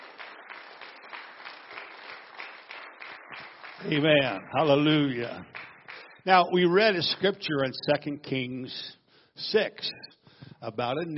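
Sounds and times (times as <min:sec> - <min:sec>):
audience clapping hands: 0:00.0 - 0:06.9
speech: 0:03.8 - 0:05.6, 0:06.2 - 0:11.1.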